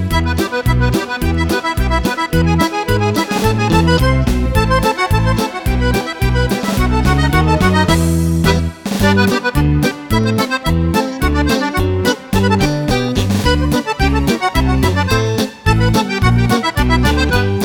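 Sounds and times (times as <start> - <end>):
accordion: 0.0 - 17.6.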